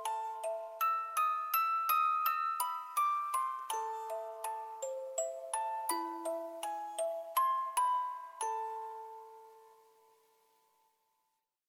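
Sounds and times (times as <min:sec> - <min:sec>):
music box playing a classical piano piece: 0:00.0 - 0:10.9.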